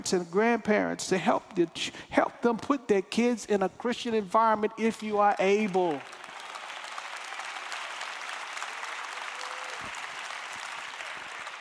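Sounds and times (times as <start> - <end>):
speech: 0.0 - 6.2
audience applause: 5.6 - 11.6.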